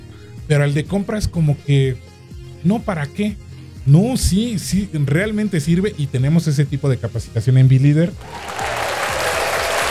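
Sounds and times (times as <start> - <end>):
speech: 0.5 - 8.6
applause: 8.2 - 9.8.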